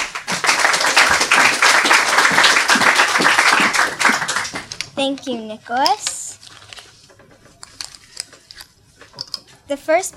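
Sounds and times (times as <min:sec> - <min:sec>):
audience applause: 0:00.0 - 0:04.8
speech: 0:05.0 - 0:06.1, 0:09.7 - 0:10.1.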